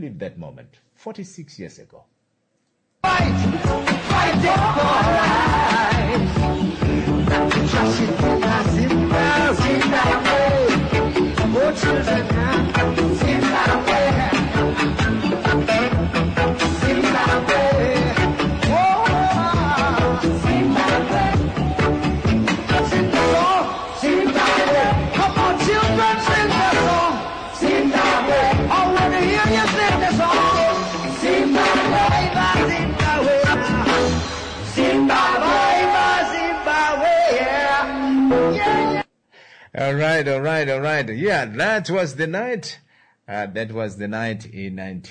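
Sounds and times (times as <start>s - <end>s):
speech: 0.0s - 2.2s, 3.1s - 10.5s, 39.9s - 45.0s
live reggae band playing at a concert: 3.0s - 39.0s.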